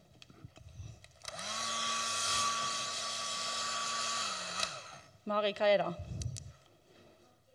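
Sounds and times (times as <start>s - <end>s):
hair dryer running: 1.2s - 5.2s
speech: 5.3s - 6.1s.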